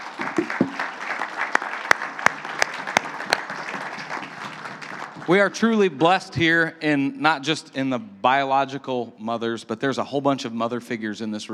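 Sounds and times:
audience applauding: 0.0s - 6.1s
speech: 5.3s - 11.5s.

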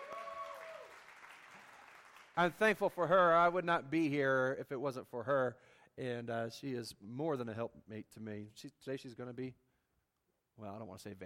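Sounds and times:
audience applause: 0.0s - 2.4s
speech: 2.4s - 9.6s, 10.6s - 11.2s.

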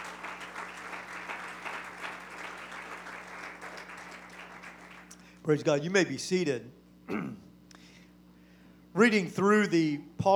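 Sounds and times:
audience clapping: 0.0s - 5.4s
speech: 5.5s - 7.4s, 9.0s - 10.3s.

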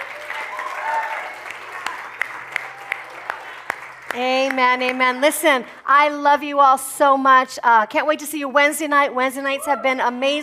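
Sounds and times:
audience shouting and applauding: 0.0s - 4.6s
speech: 4.2s - 10.4s.

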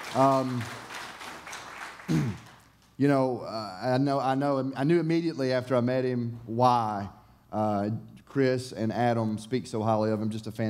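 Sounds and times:
audience applause: 0.0s - 2.8s
speech: 0.1s - 0.8s, 3.0s - 10.6s.

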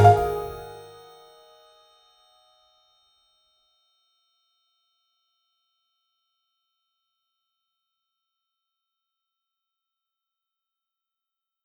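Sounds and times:
marimba: 0.0s - 0.8s.

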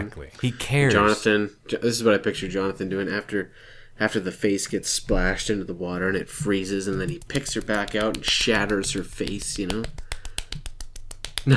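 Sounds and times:
speech: 0.0s - 10.0s
slow hand clapping: 6.5s - 11.5s.

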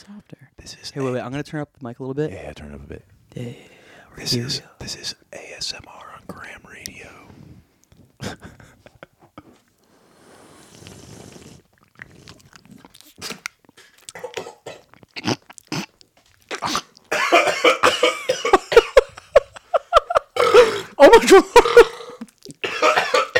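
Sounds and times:
speech: 0.1s - 7.2s, 21.0s - 21.9s
person chewing a Boston cream doughnut: 10.6s - 17.1s, 21.6s - 22.6s
person coughing as food goes down wrong: 14.1s - 14.9s, 16.5s - 19.2s, 20.4s - 23.3s.

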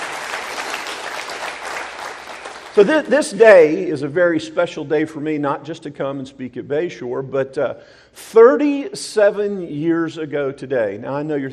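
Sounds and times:
audience applause: 0.0s - 3.1s
speech: 2.8s - 11.5s.

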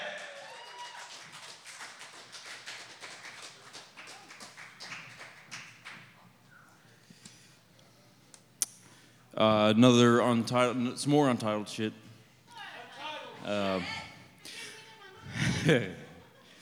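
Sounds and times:
audience applause at a poetry slam: 0.0s - 6.2s
speech: 9.4s - 12.0s, 13.5s - 14.0s, 15.6s - 16.0s
laughter: 14.4s - 16.6s.

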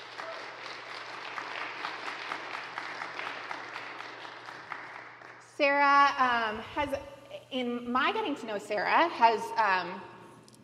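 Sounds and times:
audience applause: 0.0s - 5.4s
speech: 5.6s - 10.1s.

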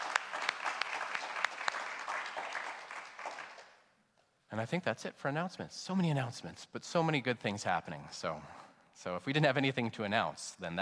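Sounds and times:
crowd clapping: 0.0s - 3.9s
speech: 4.5s - 10.8s.

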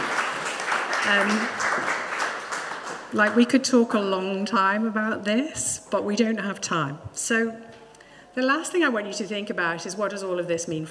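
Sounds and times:
audience applause at a church talk: 0.0s - 3.4s
speech: 1.0s - 2.0s, 3.1s - 7.8s, 8.4s - 10.9s.

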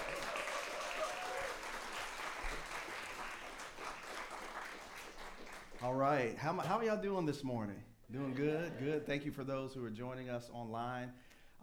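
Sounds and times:
audience applause: 0.0s - 5.9s
speech: 5.8s - 11.6s.

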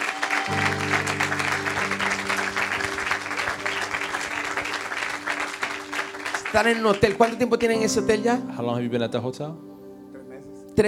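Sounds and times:
audience clapping: 0.0s - 8.0s
held keyboard or organ chord: 0.5s - 10.8s
speech: 6.5s - 9.7s.

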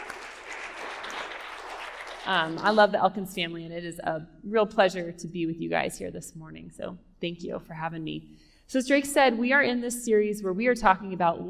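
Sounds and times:
audience applause: 0.0s - 2.8s
speech: 2.3s - 11.4s.

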